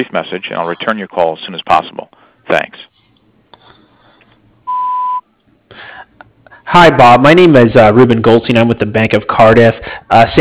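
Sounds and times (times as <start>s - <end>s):
speech: 0.0s - 2.9s, 6.7s - 10.3s
electronic voicemail recording tone beep: 4.7s - 5.3s.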